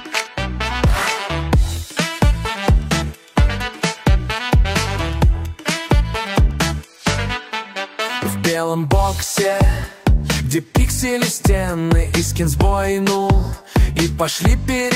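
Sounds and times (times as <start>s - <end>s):
cyborg groove: 0.1s - 7.3s, 8.9s - 14.9s.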